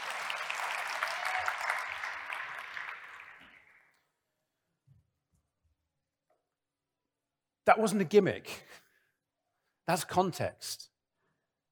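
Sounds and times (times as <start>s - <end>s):
audience applause: 0.0s - 3.9s
speech: 7.7s - 8.8s, 9.9s - 10.9s.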